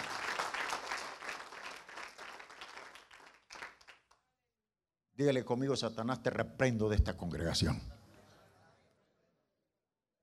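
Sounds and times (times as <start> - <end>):
audience applauding: 0.0 - 4.2
speech: 5.2 - 8.0.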